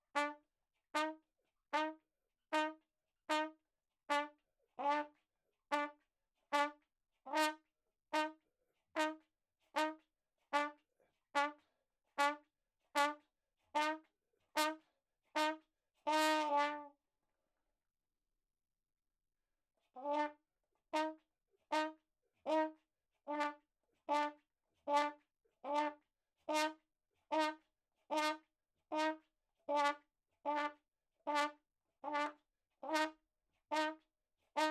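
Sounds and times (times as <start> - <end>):
ragtime trumpet playing in a room: 0.0 - 0.4, 1.0 - 1.2, 1.8 - 2.0, 2.6 - 5.1, 5.7 - 6.0, 6.6 - 8.4, 9.0 - 9.2, 9.8 - 10.0, 10.6 - 10.8, 11.4 - 11.6, 12.2 - 12.4, 13.0 - 13.2, 13.8 - 14.0, 14.6 - 14.8, 15.4 - 16.9, 20.0 - 20.4, 21.0 - 28.4, 29.0 - 34.0.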